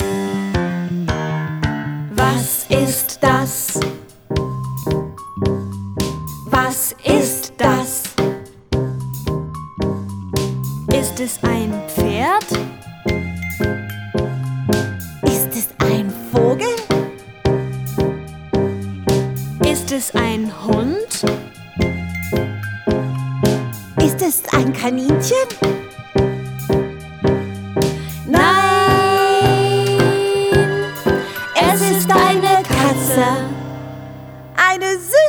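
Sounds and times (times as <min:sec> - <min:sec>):
German song: 0:00.0 - 0:34.6.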